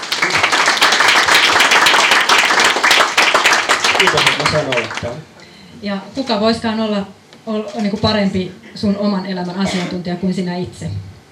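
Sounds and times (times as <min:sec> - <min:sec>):
audience applause: 0:00.0 - 0:05.2
speech: 0:04.0 - 0:11.1.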